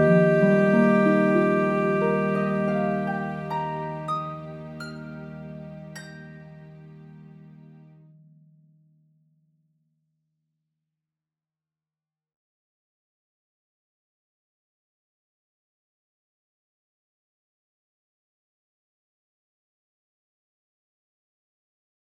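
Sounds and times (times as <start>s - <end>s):
instrumental music: 0.0s - 8.1s.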